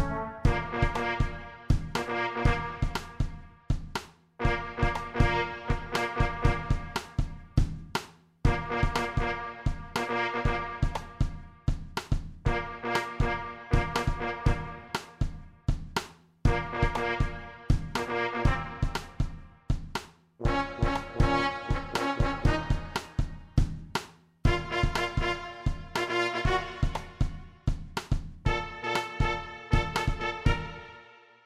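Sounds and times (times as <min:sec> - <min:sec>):
trombone: 0:00.0 - 0:03.4, 0:04.4 - 0:07.4, 0:08.5 - 0:11.4, 0:12.4 - 0:15.2, 0:16.5 - 0:19.4, 0:20.4 - 0:23.4, 0:24.5 - 0:27.4, 0:28.5 - 0:31.2
trumpet: 0:00.0 - 0:03.5, 0:04.4 - 0:07.6, 0:08.5 - 0:11.8, 0:12.4 - 0:15.4, 0:16.5 - 0:19.6, 0:20.4 - 0:23.6, 0:24.5 - 0:27.7, 0:28.4 - 0:31.4
drum kit: 0:00.0 - 0:30.9.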